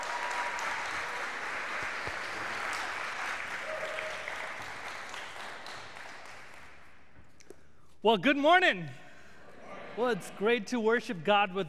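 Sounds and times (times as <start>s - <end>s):
audience applauding: 0.0s - 6.9s
speech: 8.0s - 9.0s, 10.0s - 11.6s.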